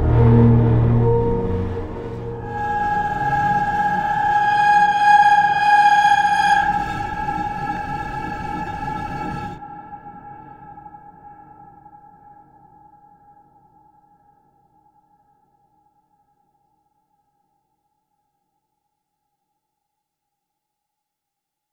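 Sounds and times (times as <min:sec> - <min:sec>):
lullaby: 0:00.2 - 0:10.9.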